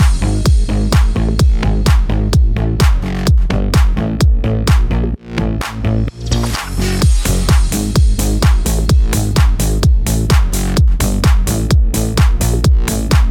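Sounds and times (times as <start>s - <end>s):
house bass bed in F minor at 128 BPM: 0.0s - 13.2s.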